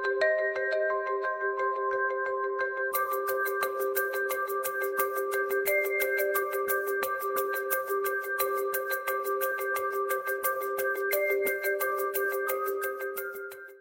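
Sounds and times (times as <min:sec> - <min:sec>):
emotional ringtone: 0:00.2 - 0:13.8.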